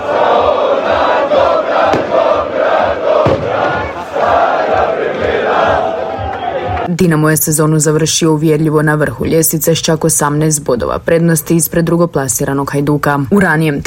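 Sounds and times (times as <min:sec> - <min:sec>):
football fans roaring and chanting outside a stadium: 0:00.0 - 0:06.9
music programme with steady rhythmic pulse: 0:00.0 - 0:07.2
speech: 0:07.0 - 0:13.8.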